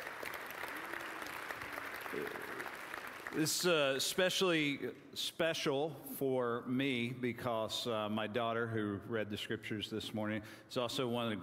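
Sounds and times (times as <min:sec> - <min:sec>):
audience applause: 0:00.0 - 0:03.9
speech: 0:02.1 - 0:02.7, 0:03.3 - 0:11.4.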